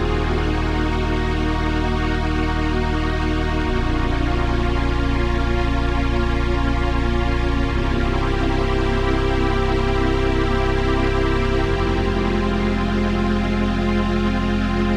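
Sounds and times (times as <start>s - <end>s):
dry string machine synthesizer: 0.0s - 14.8s.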